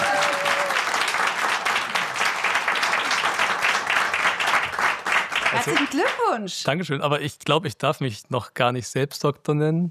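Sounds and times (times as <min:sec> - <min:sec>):
live audience applause: 0:00.0 - 0:06.3
speech: 0:05.6 - 0:09.8.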